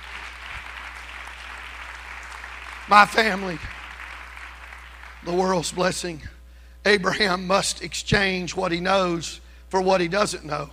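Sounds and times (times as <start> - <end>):
audience hand clapping: 0.0 - 6.2
speech: 2.9 - 3.8, 5.2 - 10.7.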